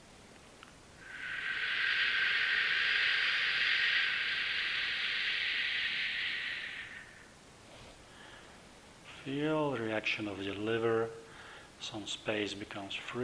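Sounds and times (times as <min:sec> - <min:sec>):
long exhaled shh healing breath: 0:01.0 - 0:08.6
speech: 0:09.2 - 0:11.2, 0:11.8 - 0:13.2.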